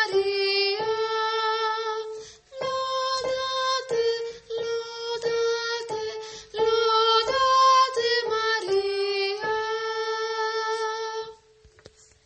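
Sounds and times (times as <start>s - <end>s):
sopranos singing: 0.0s - 11.5s.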